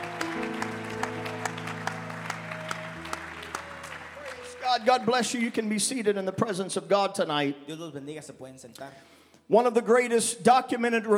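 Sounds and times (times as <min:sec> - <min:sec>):
audience shouting praise: 0:00.0 - 0:04.9
audience clapping: 0:00.0 - 0:05.6
speech: 0:04.7 - 0:11.1.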